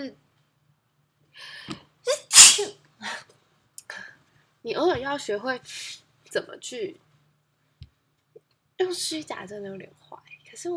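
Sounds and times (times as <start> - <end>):
speech: 0.0 - 0.2, 4.6 - 7.0, 8.8 - 10.7
sneeze: 2.1 - 2.8.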